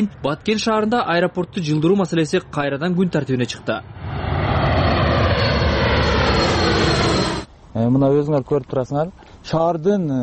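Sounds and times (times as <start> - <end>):
speech: 0.0 - 4.2, 7.8 - 10.2
airplane engine roar flying low over the centre of Batken: 3.6 - 7.5.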